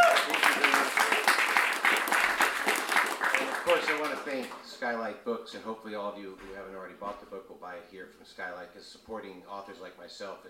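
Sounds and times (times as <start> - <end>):
audience applause: 0.0 - 4.6
speech: 3.9 - 10.4.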